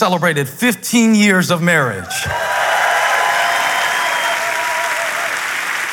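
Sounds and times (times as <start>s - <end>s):
speech: 0.0s - 2.6s
faint cheering: 2.2s - 5.9s
loud crowd applause: 2.3s - 5.9s.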